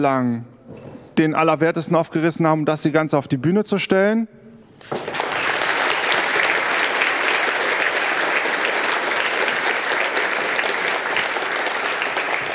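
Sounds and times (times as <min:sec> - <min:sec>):
speech: 0:00.0 - 0:05.1
audience applause: 0:04.8 - 0:12.5.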